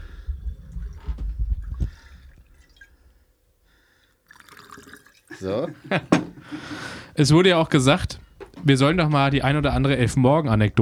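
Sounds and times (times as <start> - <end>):
water pouring into a bottle: 0.0 - 3.2, 4.2 - 5.8
laughter: 5.3 - 7.0
speech: 5.4 - 10.7.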